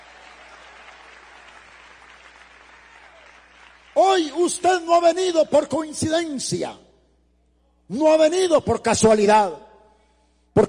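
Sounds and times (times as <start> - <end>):
audience applauding: 0.0 - 4.2
speech: 4.0 - 6.8, 7.9 - 9.7.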